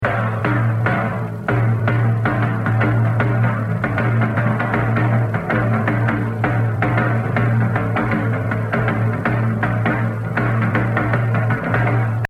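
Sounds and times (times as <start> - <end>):
jazz drum solo: 0.0 - 12.2.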